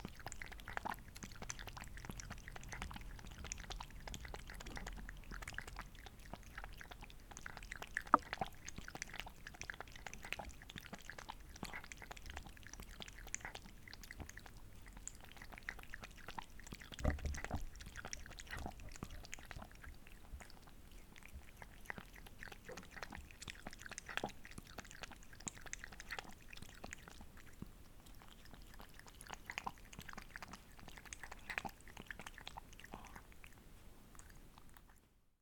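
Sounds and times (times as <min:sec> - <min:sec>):
cat lapping water: 0:00.0 - 0:35.1.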